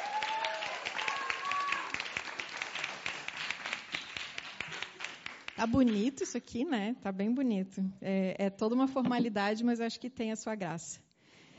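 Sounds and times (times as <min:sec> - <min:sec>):
audience applause: 0:00.0 - 0:05.7
speech: 0:05.6 - 0:11.0.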